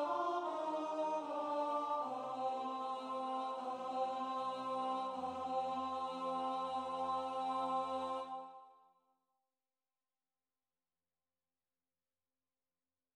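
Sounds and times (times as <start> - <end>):
tenor singing: 0.0 - 8.5.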